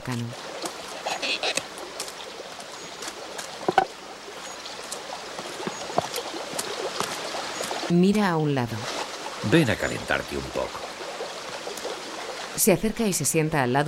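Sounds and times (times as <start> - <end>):
light splashes and clicks: 0.0 - 7.9, 10.9 - 12.5
jet of running water beside a stone wall: 0.0 - 12.8
speech: 0.1 - 0.5, 7.9 - 10.8, 12.6 - 13.8.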